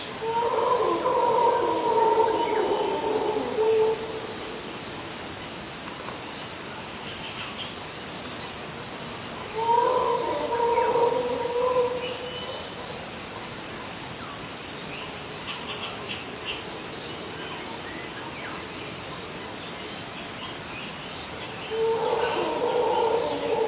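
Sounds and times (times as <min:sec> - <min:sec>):
howler monkeys: 0:00.2 - 0:04.7, 0:09.5 - 0:13.0, 0:21.6 - 0:23.6.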